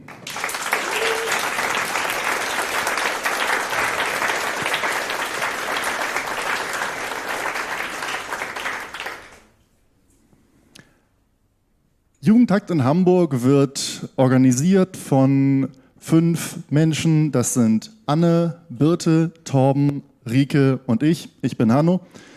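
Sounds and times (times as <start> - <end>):
audience applause: 0.0 - 9.5
speech: 12.3 - 22.3.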